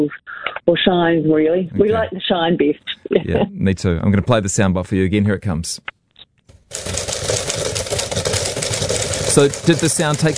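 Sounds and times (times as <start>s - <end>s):
speech: 0.0s - 6.0s, 6.7s - 7.1s, 9.3s - 10.3s
typewriter typing clatter: 6.7s - 10.3s.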